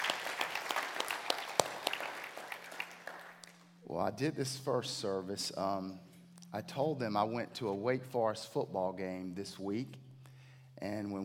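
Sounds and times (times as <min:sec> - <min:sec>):
audience applause: 0:00.0 - 0:03.4
speech: 0:03.9 - 0:10.0, 0:10.8 - 0:11.2.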